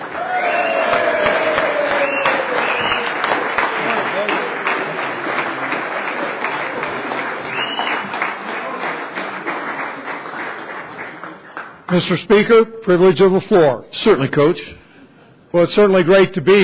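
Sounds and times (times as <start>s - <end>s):
audience cheering: 0.0s - 10.2s
audience applause: 0.0s - 12.0s
speech: 11.9s - 14.8s, 15.5s - 16.6s.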